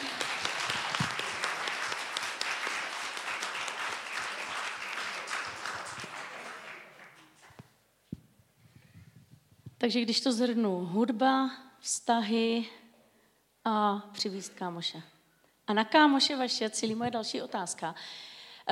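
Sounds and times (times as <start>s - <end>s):
applause: 0.0s - 7.7s
speech: 9.8s - 12.8s, 13.7s - 15.1s, 15.7s - 18.7s.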